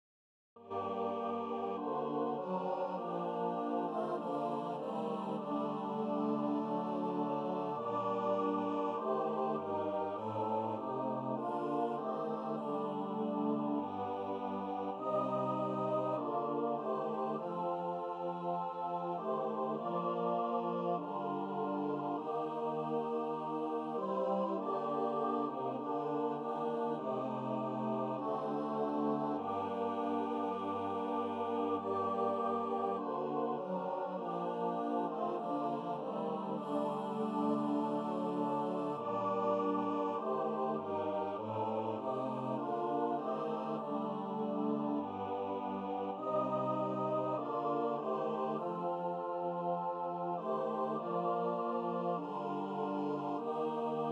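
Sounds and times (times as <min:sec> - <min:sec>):
choir singing: 0:00.6 - 0:54.1.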